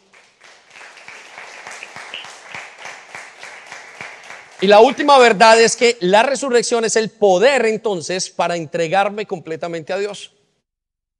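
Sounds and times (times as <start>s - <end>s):
audience applause: 0.0s - 5.3s
speech: 4.6s - 10.4s.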